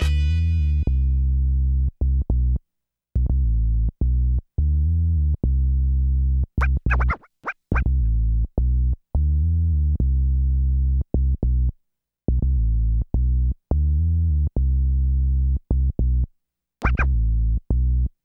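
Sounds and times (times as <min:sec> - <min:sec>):
bass line in E minor: 0:00.0 - 0:02.6, 0:03.2 - 0:18.2.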